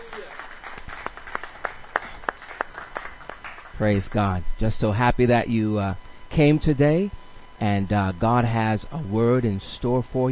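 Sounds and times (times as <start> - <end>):
audience applause: 0.0 - 3.8
speech: 3.8 - 10.3.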